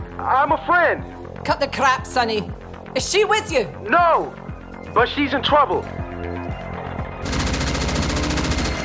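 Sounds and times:
speech: 0.5s - 6.0s
rapid automatic gunfire at Imperius Corporation in Arcadia City: 7.3s - 8.8s.

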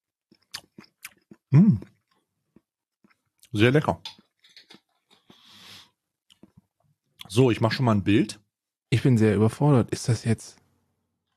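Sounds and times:
person biting and chewing Jolly Eggnog eggnog cake: 0.3s - 3.5s, 6.3s - 6.6s
speech: 1.5s - 1.9s, 3.5s - 4.2s, 7.3s - 10.6s.

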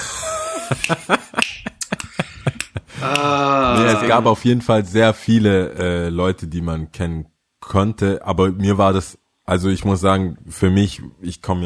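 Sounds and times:
speech: 0.7s - 1.3s, 3.8s - 11.6s
sharp hand claps: 0.8s - 4.0s.

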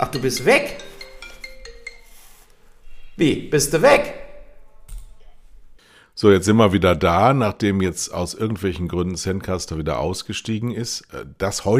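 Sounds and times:
speech: 0.0s - 0.9s, 3.2s - 4.2s, 6.2s - 11.7s
mobile phone ringing: 0.0s - 2.4s.

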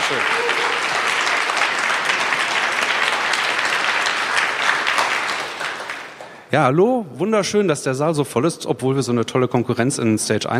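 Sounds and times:
audience applause: 0.0s - 6.5s
speech: 0.1s - 0.8s, 6.5s - 10.5s.

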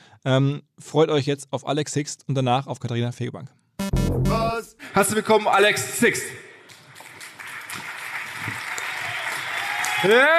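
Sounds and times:
speech: 0.2s - 6.4s, 10.0s - 10.3s
audience applause welcoming a guest on stage: 6.6s - 10.3s.

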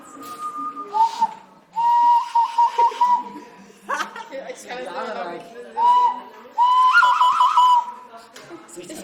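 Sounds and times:
person whistling with pursed lips: 0.0s - 3.4s, 5.8s - 8.0s
laughter: 2.5s - 4.8s.

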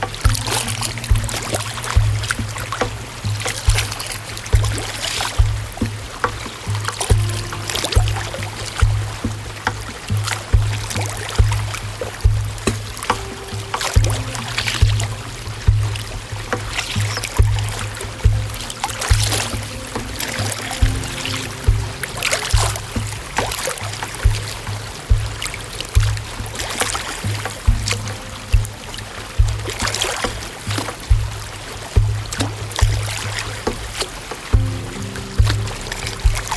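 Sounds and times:
low hum: 0.0s - 33.6s
faint wavering tones: 0.0s - 33.7s
water lapping and splashing on Fuschlsee: 0.0s - 36.5s.

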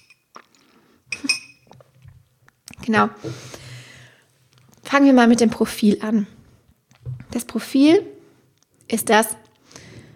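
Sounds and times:
glass of orange juice clinking: 1.1s - 1.7s
speech: 2.9s - 3.6s, 5.0s - 6.4s, 7.4s - 8.1s, 8.9s - 9.4s.

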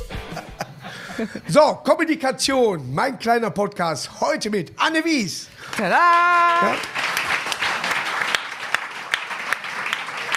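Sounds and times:
laughter: 0.0s - 1.6s
speech: 1.2s - 7.0s
hands clapping: 5.6s - 10.3s.

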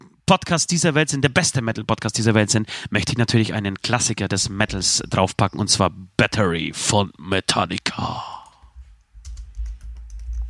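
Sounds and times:
speech: 0.3s - 8.4s
typing on a computer keyboard into a teleprompter: 9.2s - 10.4s.

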